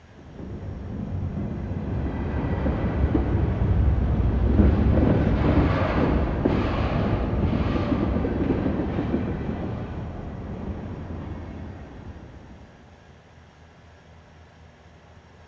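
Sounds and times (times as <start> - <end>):
distant train passing: 0.0 - 14.0.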